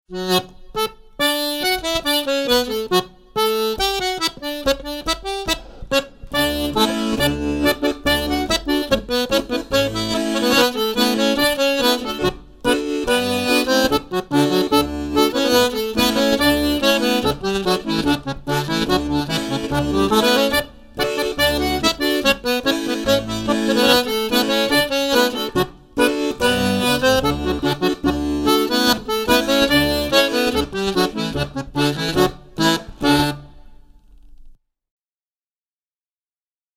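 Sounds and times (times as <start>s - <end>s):
Molly dance tune chorus: 1.2s - 33.5s.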